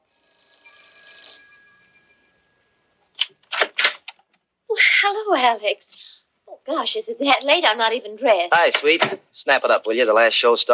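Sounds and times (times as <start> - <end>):
doorbell ringing: 0.0 - 3.0
speech: 5.1 - 10.7.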